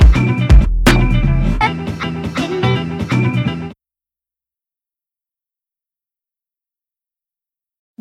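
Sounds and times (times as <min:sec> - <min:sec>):
instrumental music: 0:00.0 - 0:03.8.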